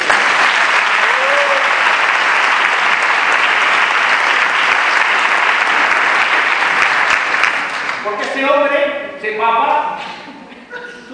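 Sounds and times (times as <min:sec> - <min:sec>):
audience applause: 0:00.0 - 0:08.1
speech: 0:08.4 - 0:10.1.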